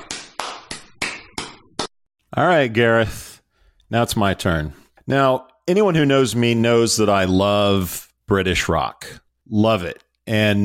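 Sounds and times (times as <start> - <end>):
golf clap: 0.0 - 1.9
speech: 2.4 - 3.3, 3.9 - 10.6.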